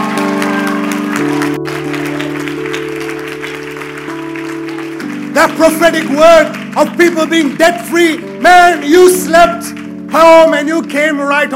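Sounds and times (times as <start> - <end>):
audience applauding: 0.0 - 11.5
sustained organ or keyboard chords: 0.0 - 11.5
speech: 5.6 - 11.5.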